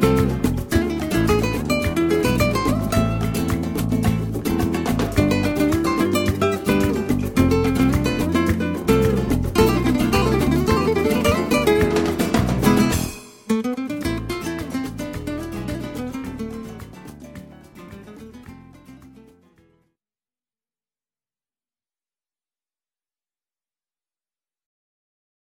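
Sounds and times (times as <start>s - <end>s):
jazz guitar: 0.0s - 19.6s.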